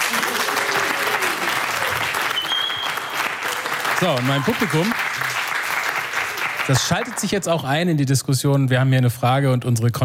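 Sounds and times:
school audience of students clapping: 0:00.0 - 0:07.5
high whistle-like tone: 0:02.3 - 0:03.1
speech: 0:04.0 - 0:05.4, 0:06.7 - 0:10.0.

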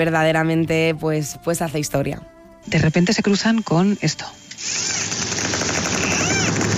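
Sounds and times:
speech: 0:00.0 - 0:05.0
high arching dolphin whistles: 0:06.0 - 0:06.6.

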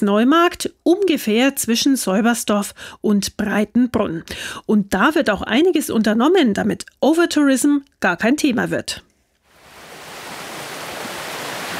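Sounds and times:
speech: 0:00.0 - 0:09.1
Wissinger Laber brook flowing through the Heutal meadow: 0:09.6 - 0:11.7.

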